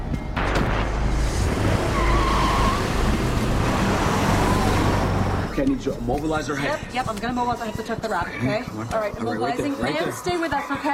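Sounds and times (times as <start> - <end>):
car speeding off: 0.7 - 5.7
tire squeal: 1.3 - 5.6
speech: 5.8 - 10.9.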